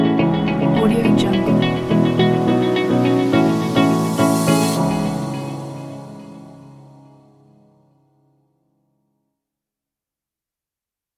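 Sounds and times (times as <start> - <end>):
summer holidays tropical music track: 0.2 - 6.6.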